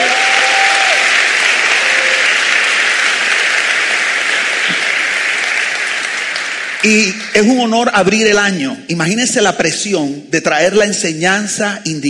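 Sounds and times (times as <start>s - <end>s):
audience applause: 0.0s - 7.3s
speech: 6.8s - 12.0s.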